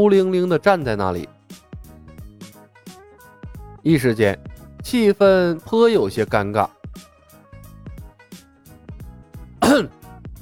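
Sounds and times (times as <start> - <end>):
speech: 0.0 - 1.4, 3.8 - 7.1, 9.8 - 10.0
soft musical backing of steady tones and low plucked notes: 0.0 - 10.4
throat clearing: 9.6 - 10.0.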